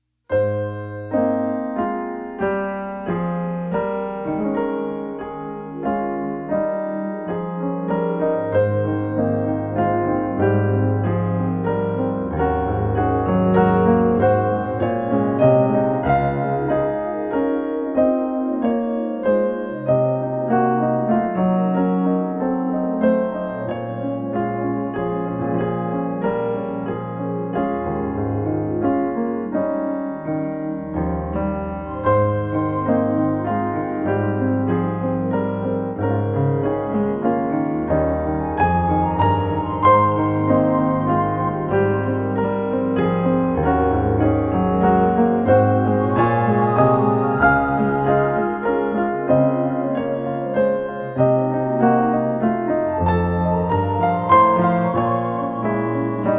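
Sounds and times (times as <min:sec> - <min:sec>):
piano: 0:00.0 - 0:56.3.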